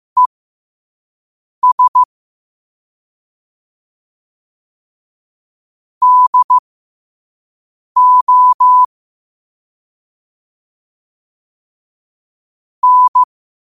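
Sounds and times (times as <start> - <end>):
morse code at 5 wpm: 1.6 - 2.1, 6.0 - 6.6, 8.0 - 8.9, 12.8 - 13.3.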